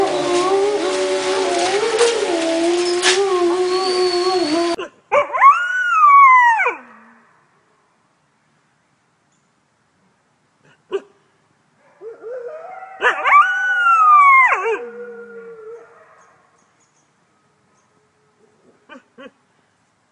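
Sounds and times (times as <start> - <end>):
wolf howling: 0.0 - 7.1, 12.0 - 16.4.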